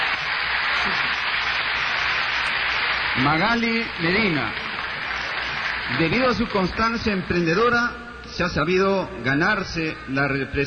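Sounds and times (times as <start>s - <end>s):
hired audience applauding: 0.0s - 7.7s
speech: 3.2s - 4.6s, 5.9s - 10.6s.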